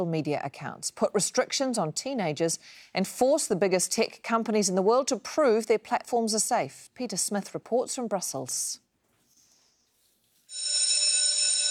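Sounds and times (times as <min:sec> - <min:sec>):
speech: 0:00.0 - 0:08.8
school bell ringing: 0:10.5 - 0:11.6.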